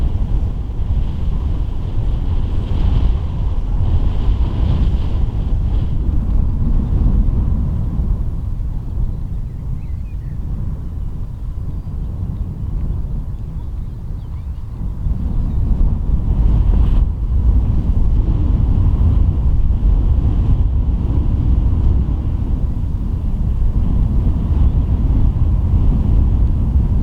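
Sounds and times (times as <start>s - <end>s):
wind roaring around the Rubjerg Knude lighthouse: 0.0s - 27.0s.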